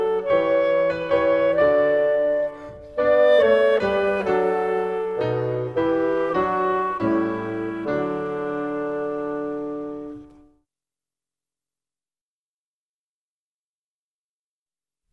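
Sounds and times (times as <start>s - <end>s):
music: 0.0s - 10.7s.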